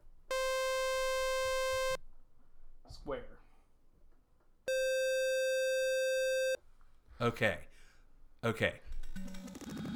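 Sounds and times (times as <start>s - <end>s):
synthesized sawtooth wave tone: 0.3s - 2.0s, 4.7s - 6.6s
speech: 3.0s - 3.4s, 7.2s - 7.7s, 8.4s - 9.4s.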